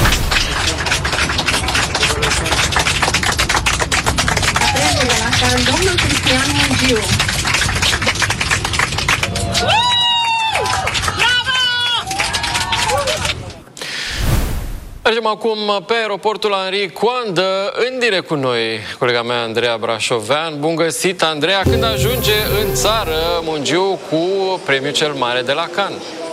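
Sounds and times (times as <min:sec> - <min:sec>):
passengers applauding aboard an airplane: 0:00.1 - 0:13.6
speech: 0:05.5 - 0:07.5, 0:09.6 - 0:09.9, 0:15.1 - 0:26.2.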